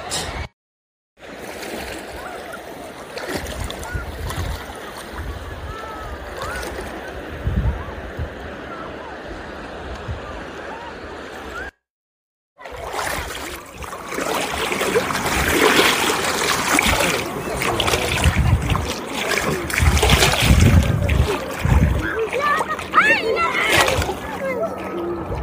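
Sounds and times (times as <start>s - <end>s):
cold sea water splashing as a person wades in wearing sandals: 1.2s - 5.5s, 12.6s - 25.4s.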